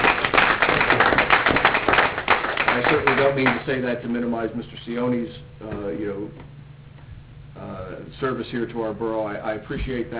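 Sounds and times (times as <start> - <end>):
group of people clapping at a borough council meeting: 0.0 - 3.7
speech: 3.2 - 6.6, 7.6 - 10.1.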